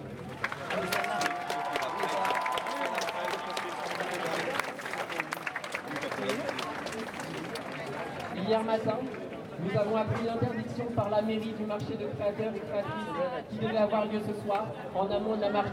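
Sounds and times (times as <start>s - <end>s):
audience applause: 0.2s - 9.2s
speech: 8.5s - 15.7s.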